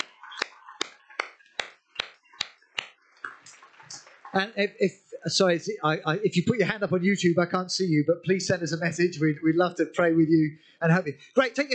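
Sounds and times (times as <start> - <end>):
group hand claps in unison: 0.0 - 3.0
speech: 4.4 - 11.7.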